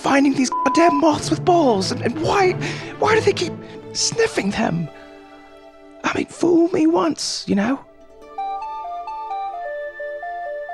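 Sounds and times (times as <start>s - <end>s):
speech: 0.0s - 5.0s, 6.1s - 7.9s
Blackberry phone alert tone: 0.5s - 1.2s.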